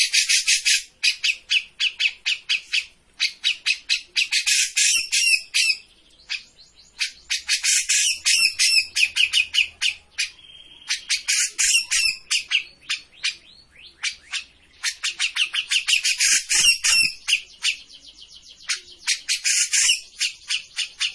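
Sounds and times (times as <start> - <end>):
Grey-cheeked bulbul chattering: 0.0 - 21.1.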